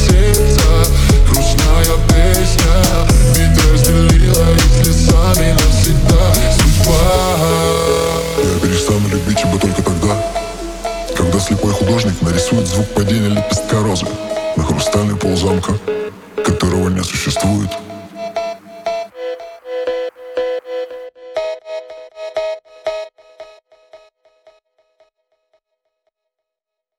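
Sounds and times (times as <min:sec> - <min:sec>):
phonk remix: 0:00.0 - 0:21.0.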